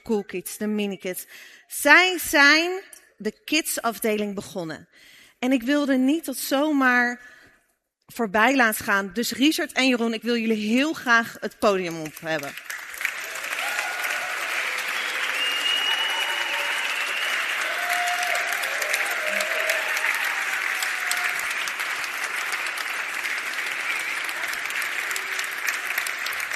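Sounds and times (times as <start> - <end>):
speech: 0.0 - 7.4, 8.1 - 12.9
audience applause: 12.1 - 26.5
faint cheers: 13.0 - 26.5.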